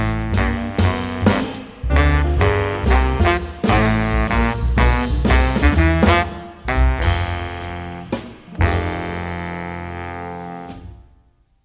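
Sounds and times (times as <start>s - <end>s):
baritone saxophone playing a blues jazz etude: 0.0s - 11.3s.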